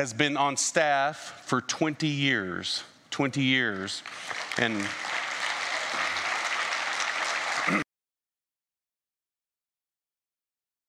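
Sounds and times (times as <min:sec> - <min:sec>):
speech: 0:00.0 - 0:05.2
church congregation applauding during a service: 0:03.8 - 0:07.9.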